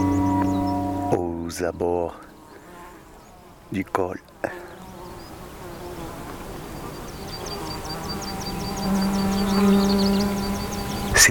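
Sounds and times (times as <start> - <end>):
high-pitched insect chirping: 0.0 - 1.2, 6.7 - 11.2
low droning insect hum: 0.0 - 11.2
speech: 1.1 - 2.3, 3.7 - 4.6.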